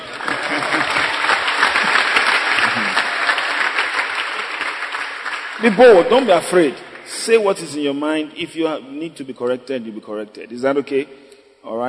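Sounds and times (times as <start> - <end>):
laughter: 0.0 - 3.4
audience clapping: 0.0 - 7.7
speech: 5.6 - 11.8.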